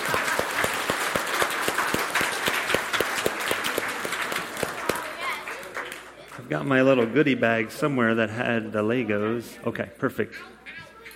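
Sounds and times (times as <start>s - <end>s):
audience applause: 0.0s - 6.7s
speech: 6.5s - 10.6s.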